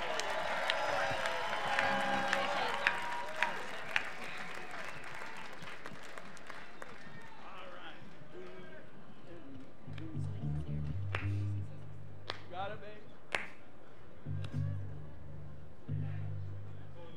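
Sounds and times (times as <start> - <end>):
crowd applause: 0.0 - 8.7
faint voices murmuring: 0.0 - 17.1.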